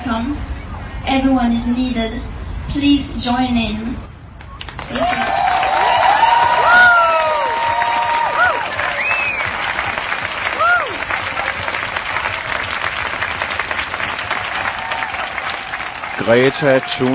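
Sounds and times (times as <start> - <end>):
speech: 0.1 - 4.1, 4.9 - 5.4, 16.2 - 17.1
crowd of about 1,000 people in Stockholm, Sweden, applauding after Greta Thunberg's speech: 4.4 - 17.1
whistles and whoops: 4.5 - 9.6, 10.5 - 11.8.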